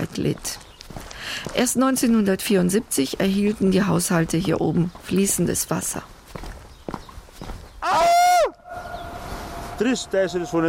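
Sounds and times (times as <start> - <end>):
speech: 0.1 - 6.2, 9.8 - 10.6
voice echoing in mountain landscape: 8.6 - 10.6.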